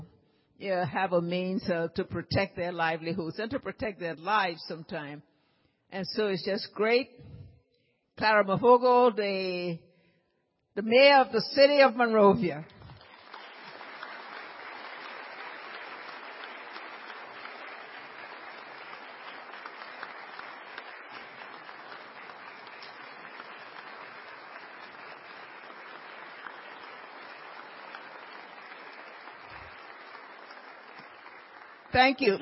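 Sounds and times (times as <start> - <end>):
speech: 0.6 - 5.3, 5.9 - 7.4, 8.2 - 9.9, 10.8 - 12.8, 32.0 - 32.4
audience clapping: 12.7 - 32.4.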